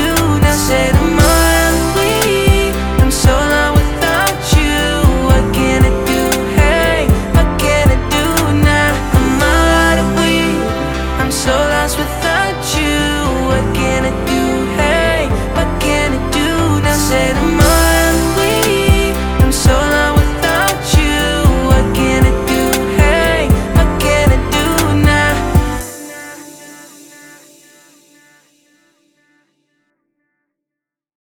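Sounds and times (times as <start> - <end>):
man singing mainstream rap hooks: 0.0 - 27.8.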